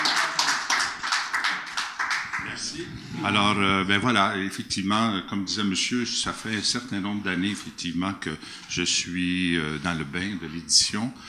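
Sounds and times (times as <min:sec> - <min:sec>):
audience applause: 0:00.0 - 0:02.8
speech: 0:03.2 - 0:11.2.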